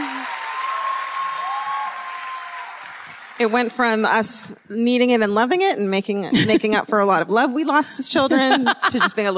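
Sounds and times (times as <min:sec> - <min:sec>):
audience clapping: 0:00.0 - 0:04.2
speech: 0:03.4 - 0:09.3
laughter: 0:06.3 - 0:06.8, 0:08.2 - 0:09.3.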